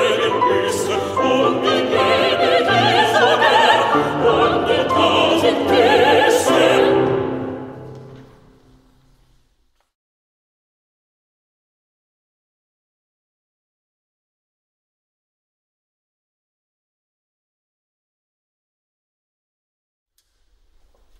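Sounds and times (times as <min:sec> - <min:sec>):
chorus singing: 0:00.0 - 0:08.5.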